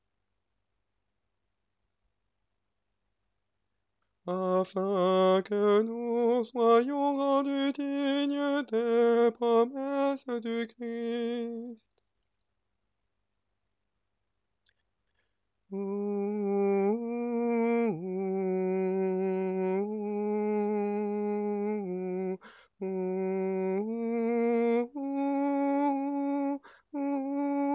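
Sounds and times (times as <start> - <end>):
tenor singing: 4.3 - 11.8, 15.7 - 27.7.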